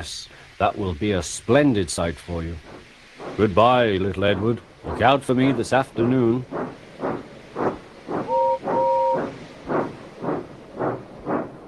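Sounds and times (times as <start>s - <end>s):
speech: 0.0s - 2.8s, 3.4s - 6.6s
steam locomotive chuffing in hissing bursts: 2.5s - 11.6s
steam locomotive two-note whistle blasts: 8.3s - 9.3s.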